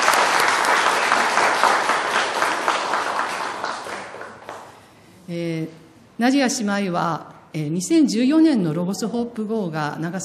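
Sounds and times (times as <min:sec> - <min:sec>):
welcoming applause: 0:00.0 - 0:04.7
speech: 0:05.3 - 0:10.2.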